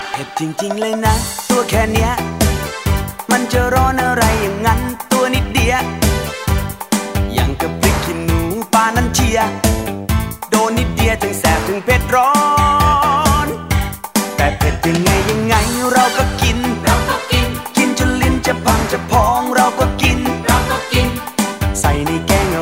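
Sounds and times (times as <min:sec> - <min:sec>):
funny Thai song: 0:00.0 - 0:22.6.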